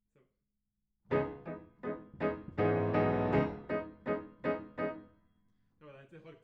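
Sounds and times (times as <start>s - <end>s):
piano note A: 1.1s - 5.1s.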